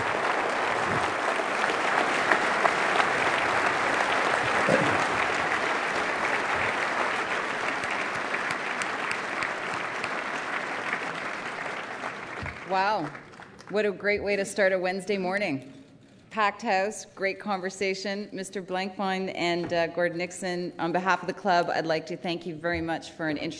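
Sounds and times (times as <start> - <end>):
round of applause: 0.0 - 13.7
speech: 13.0 - 15.8, 16.4 - 23.5.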